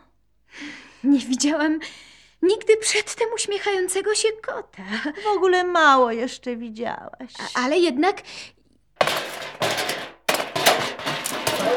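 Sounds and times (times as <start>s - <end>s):
speech: 1.1s - 8.6s
cook throwing pots and pans clattering: 9.0s - 11.7s.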